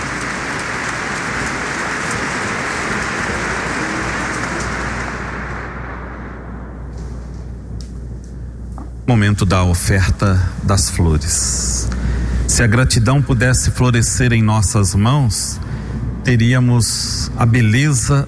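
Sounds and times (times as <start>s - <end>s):
crowd applauding: 0.0s - 6.3s
speech: 9.1s - 11.9s, 12.6s - 18.2s.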